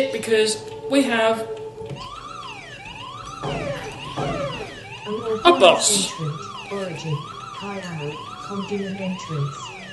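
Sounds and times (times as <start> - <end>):
speech: 0.0 - 2.1, 5.1 - 9.7
alarms blaring in a video game: 2.0 - 9.9.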